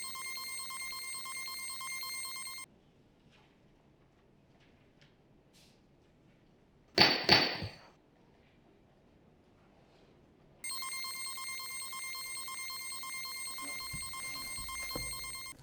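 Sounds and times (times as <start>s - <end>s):
machine running: 0.0s - 2.6s, 10.6s - 15.5s.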